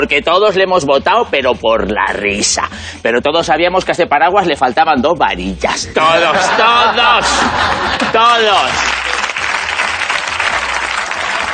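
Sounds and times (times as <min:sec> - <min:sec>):
speech: 0:00.0 - 0:09.0
laughter: 0:05.9 - 0:09.4
audience applause: 0:07.6 - 0:11.5.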